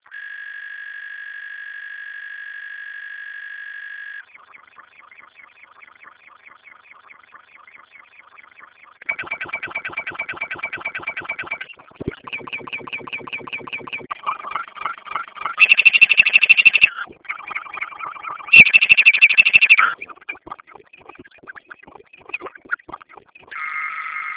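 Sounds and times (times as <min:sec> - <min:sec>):
pyrotechnics: 0:07.6 - 0:21.6.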